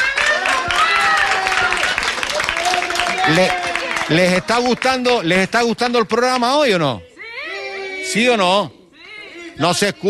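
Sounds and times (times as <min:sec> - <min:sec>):
studio audience applause: 0:00.0 - 0:05.3
speech: 0:03.3 - 0:07.1, 0:08.1 - 0:08.8, 0:09.6 - 0:10.0.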